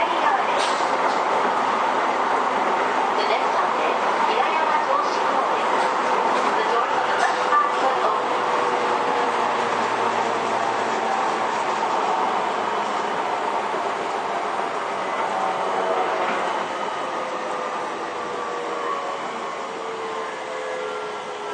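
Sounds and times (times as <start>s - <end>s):
Toei 10-300 series train rumbling on the Shinjuku–Takaosanguchi line: 0.0s - 21.5s.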